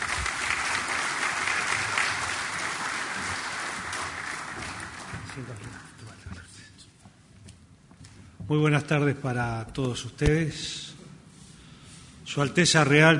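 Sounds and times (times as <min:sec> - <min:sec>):
audience applause greeting Uruguayan president Tabaré Vázquez at a CECAN 2025 event: 0:00.0 - 0:06.0
speech: 0:05.4 - 0:05.8, 0:08.5 - 0:10.8, 0:12.4 - 0:13.1.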